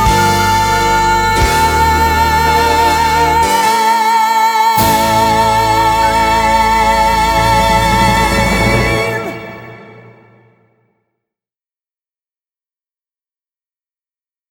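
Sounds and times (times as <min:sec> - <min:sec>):
person singing a national anthem: 0:00.0 - 0:10.4.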